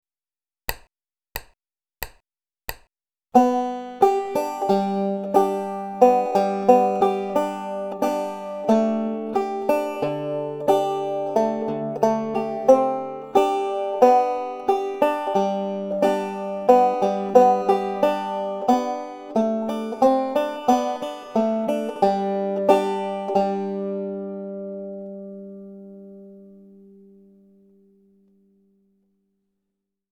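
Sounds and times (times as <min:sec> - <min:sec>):
combined two-finger picking: 0:03.4 - 0:26.8.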